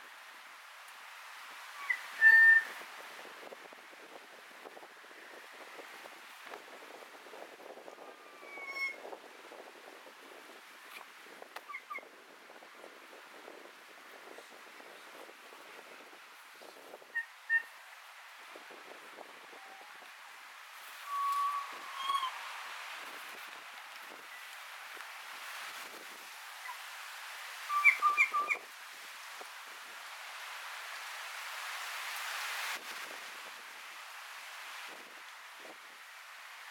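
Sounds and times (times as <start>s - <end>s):
gusty wind: 0.0s - 36.6s
Kōkako song: 21.0s - 22.4s, 27.7s - 28.6s.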